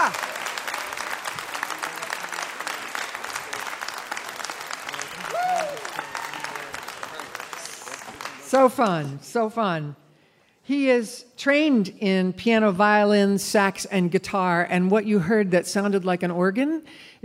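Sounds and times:
sustained applause from a large audience, standing ovation: 0:00.0 - 0:08.9
person whooping: 0:05.1 - 0:06.7
speech: 0:08.5 - 0:10.0, 0:10.7 - 0:17.2.

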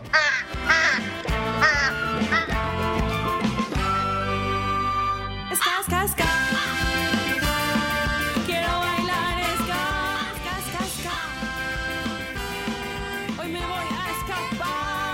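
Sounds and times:
ducks quacking: 0:00.0 - 0:02.7
little horns: 0:00.0 - 0:15.1.

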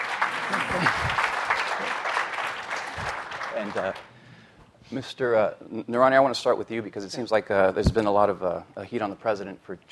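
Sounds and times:
crowd applause for panelists: 0:00.0 - 0:04.1
speech: 0:03.6 - 0:04.2, 0:04.9 - 0:09.9.

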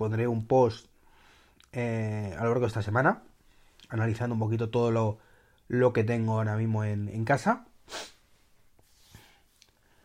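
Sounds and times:
speech: 0:00.0 - 0:00.9, 0:01.7 - 0:03.3, 0:03.9 - 0:08.1
sniffing through a blocked nose: 0:07.8 - 0:08.3.

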